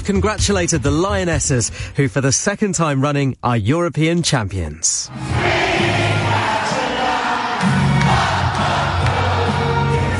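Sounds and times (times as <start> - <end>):
speech: 0.0 - 5.6
football fans roaring at a gathering in Croydon: 5.1 - 10.1.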